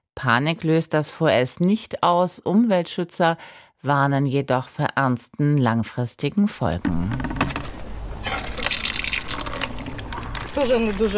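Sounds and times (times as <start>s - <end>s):
speech: 0.2s - 7.3s, 10.6s - 11.1s
water from a tap filling two buckets: 7.4s - 11.1s.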